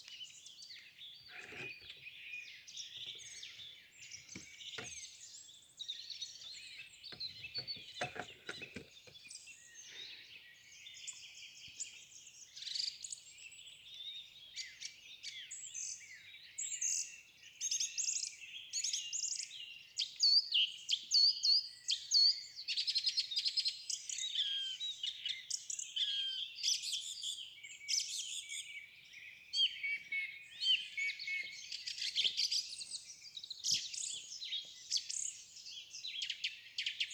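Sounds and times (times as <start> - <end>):
birds in a forest: 0.0 - 37.1
wood knocking: 7.1 - 9.0.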